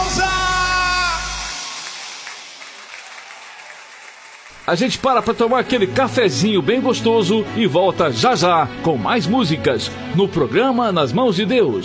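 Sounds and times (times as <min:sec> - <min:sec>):
audience applause: 0:00.9 - 0:06.0
speech: 0:04.7 - 0:11.8.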